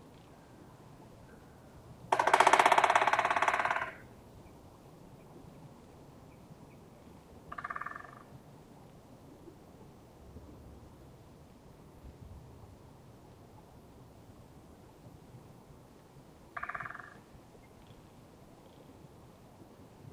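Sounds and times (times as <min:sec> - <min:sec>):
Black Woodpecker Dryocopus martius: 0:02.1 - 0:04.1, 0:07.5 - 0:08.3, 0:16.6 - 0:18.9.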